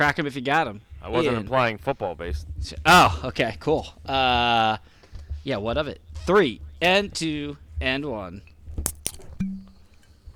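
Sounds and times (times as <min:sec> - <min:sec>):
speech: 0:00.0 - 0:08.5
bottle being opened: 0:08.8 - 0:09.9.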